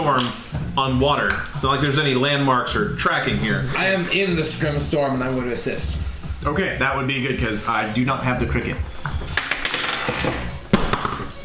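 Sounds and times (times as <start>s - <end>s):
speech: 0.0s - 8.9s
dice rolling on a hard tabletop: 9.3s - 11.1s.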